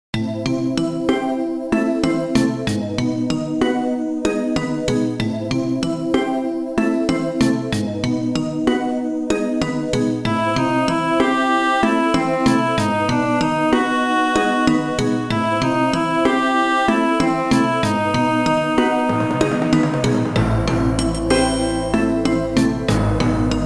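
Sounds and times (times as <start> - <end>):
maze background music: 0.2 - 23.6.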